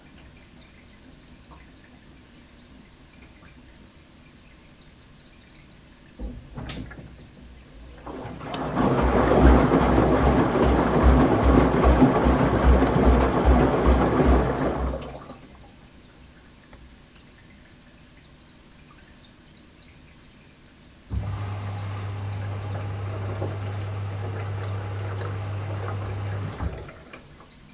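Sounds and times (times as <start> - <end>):
washing machine sloshing churn with laundry: 6.2 - 15.9, 21.1 - 27.7.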